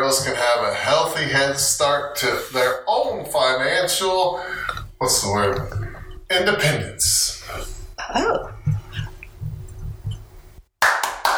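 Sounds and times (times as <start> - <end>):
speech: 0.1 - 8.6
one person clapping: 10.8 - 11.3.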